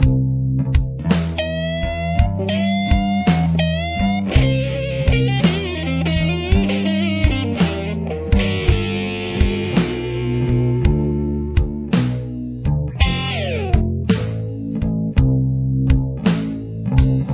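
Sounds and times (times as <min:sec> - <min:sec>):
guitar lick: 0:00.0 - 0:17.3.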